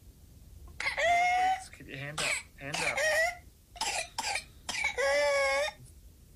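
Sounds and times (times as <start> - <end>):
child's whooping cough: 0.8 - 5.8
speech: 1.9 - 3.1.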